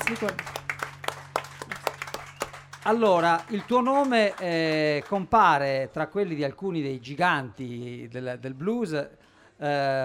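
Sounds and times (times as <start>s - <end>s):
studio audience clapping for a guest blues singer: 0.0s - 5.8s
speech: 0.1s - 0.6s, 2.8s - 10.0s.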